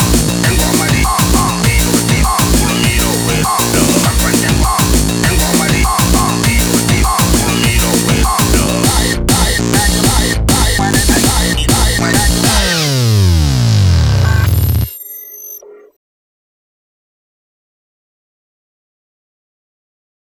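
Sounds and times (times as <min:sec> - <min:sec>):
groove music: 0:00.0 - 0:14.8.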